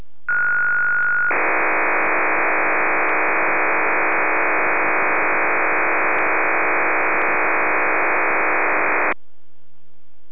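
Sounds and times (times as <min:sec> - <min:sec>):
digital voice: 0:01.3 - 0:09.2.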